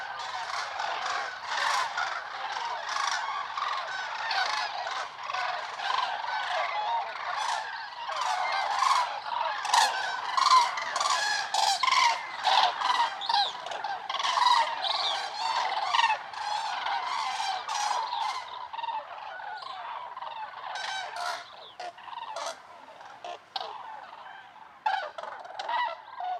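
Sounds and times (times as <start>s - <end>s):
common cranes Grus grus at Lac du Der reservoir in eastern France: 0.0s - 26.3s.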